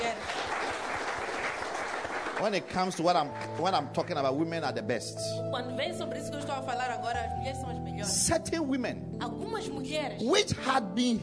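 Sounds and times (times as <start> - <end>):
audience clapping: 0.0 - 4.4
speech: 2.4 - 11.2.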